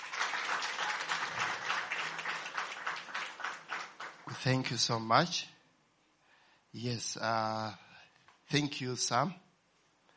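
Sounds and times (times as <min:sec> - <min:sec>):
audience applauding: 0:00.0 - 0:04.6
speech: 0:04.4 - 0:05.5, 0:06.8 - 0:07.8, 0:08.5 - 0:09.4.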